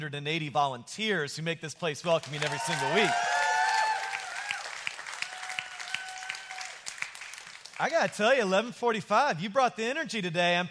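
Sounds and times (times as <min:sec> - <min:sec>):
speech: 0:00.0 - 0:03.5, 0:07.8 - 0:10.6
audience clapping for volunteers: 0:02.0 - 0:08.5.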